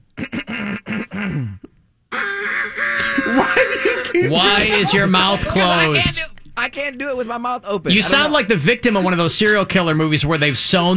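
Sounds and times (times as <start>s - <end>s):
person imitating a rooster crowing: 2.1s - 3.6s
laughter: 2.1s - 6.2s
speech: 4.2s - 10.9s.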